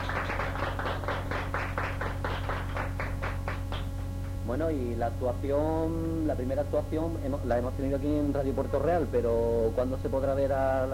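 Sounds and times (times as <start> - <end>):
applause for the performers: 0.0 - 4.4
speech: 4.5 - 10.9.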